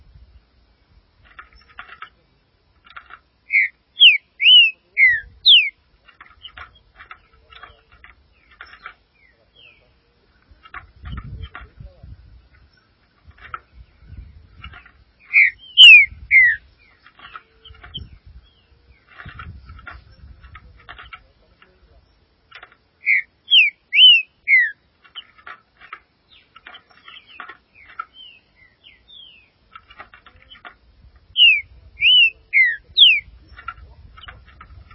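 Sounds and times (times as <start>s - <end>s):
faint chips: 1.2s - 34.9s
Green-winged saltator song: 3.5s - 5.8s, 15.3s - 16.6s, 23.0s - 24.8s, 31.4s - 33.3s.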